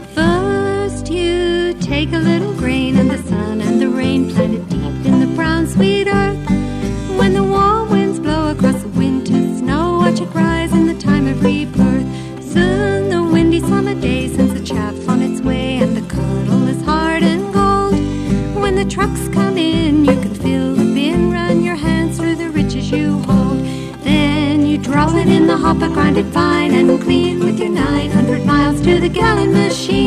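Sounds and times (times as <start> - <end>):
grinding song: 0.1 - 30.0.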